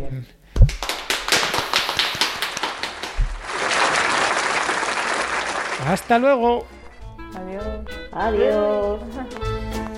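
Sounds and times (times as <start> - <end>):
speech: 0.2 - 0.7, 5.8 - 6.7, 7.3 - 9.4
applause: 0.7 - 6.3.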